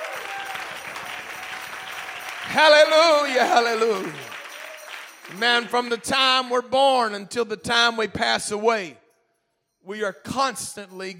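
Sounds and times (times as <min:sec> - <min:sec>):
church congregation clapping hands: 0:00.0 - 0:06.6
speech: 0:02.5 - 0:04.3, 0:05.3 - 0:09.0, 0:09.8 - 0:11.1.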